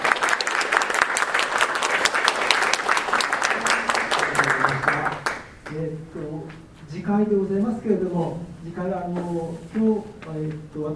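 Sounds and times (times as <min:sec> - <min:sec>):
audience applause: 0:00.0 - 0:05.7
speech: 0:06.0 - 0:10.9.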